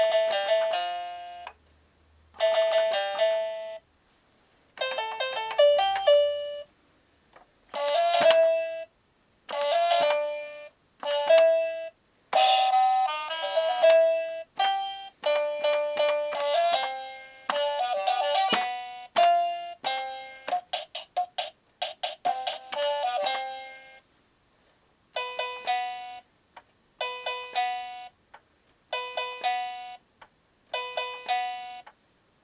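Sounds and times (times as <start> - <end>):
piano music: 0.0 - 1.5, 2.4 - 3.8, 4.8 - 6.7, 7.7 - 8.9, 9.5 - 24.0, 25.2 - 26.2, 27.0 - 28.2, 28.9 - 30.0, 30.8 - 31.8.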